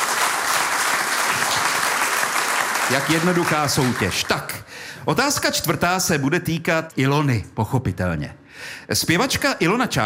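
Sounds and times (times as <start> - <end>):
audience applause for a quiz contestant: 0.0 - 4.4
speech: 2.9 - 10.0.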